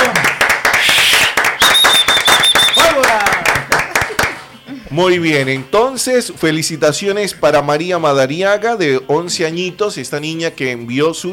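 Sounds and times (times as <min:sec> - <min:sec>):
applause: 0:00.0 - 0:04.5
speech: 0:05.0 - 0:11.3.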